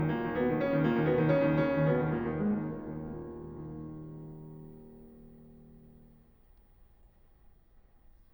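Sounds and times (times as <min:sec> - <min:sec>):
piano prelude in E flat minor: 0:00.0 - 0:06.2.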